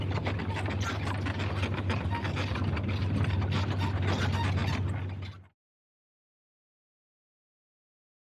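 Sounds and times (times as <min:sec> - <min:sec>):
old truck: 0:00.0 - 0:05.5.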